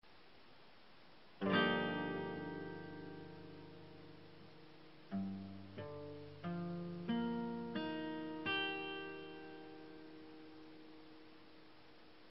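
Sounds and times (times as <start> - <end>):
C minor 7 chord: 1.4 - 11.2.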